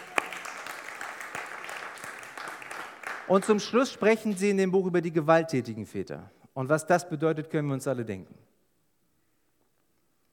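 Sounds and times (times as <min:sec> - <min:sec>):
audience clapping: 0:00.0 - 0:04.0
speech: 0:03.3 - 0:08.5.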